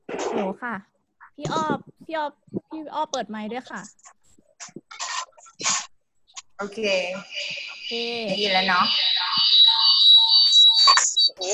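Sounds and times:
speech: 0:00.3 - 0:04.1, 0:06.6 - 0:09.5
camera giving a steady high-pitched electronic beep: 0:06.9 - 0:11.5.

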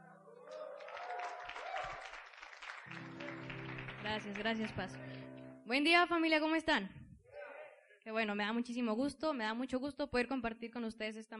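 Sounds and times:
cheering: 0:00.1 - 0:04.3
audience clapping: 0:00.4 - 0:05.3
speech: 0:04.0 - 0:07.0, 0:08.0 - 0:11.3.

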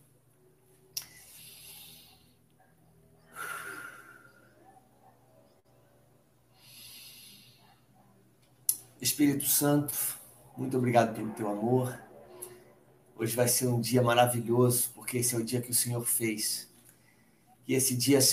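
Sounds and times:
deep breathing: 0:01.0 - 0:02.6, 0:03.2 - 0:04.8, 0:06.5 - 0:07.9, 0:10.0 - 0:13.1, 0:16.8 - 0:17.6
speech: 0:09.0 - 0:12.1, 0:13.2 - 0:16.7, 0:17.7 - 0:18.3.

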